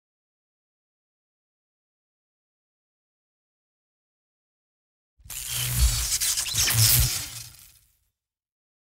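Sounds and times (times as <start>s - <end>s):
electricity noise: 5.3s - 7.8s.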